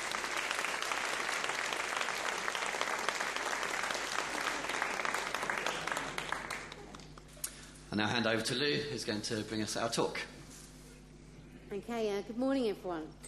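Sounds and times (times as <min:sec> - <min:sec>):
audience applauding: 0:00.0 - 0:07.3
speech: 0:08.0 - 0:10.4, 0:11.7 - 0:13.2.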